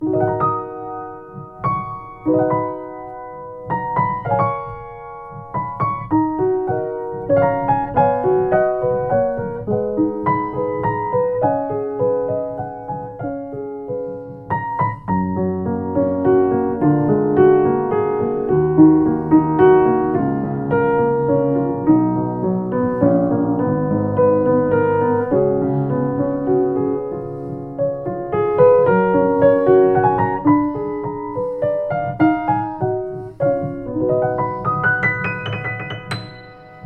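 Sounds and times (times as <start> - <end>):
Yamaha U1H upright piano: 0.0 - 36.8.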